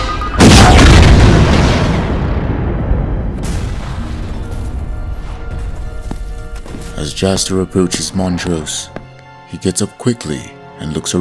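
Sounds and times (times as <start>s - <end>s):
crackle: 0.0s - 7.0s
grenade explosion: 0.0s - 7.0s
speech: 7.0s - 11.1s.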